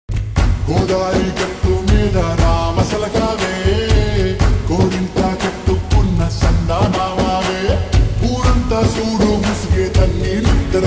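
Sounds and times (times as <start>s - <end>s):
slowed reverb Telugu song: 0.4s - 10.8s.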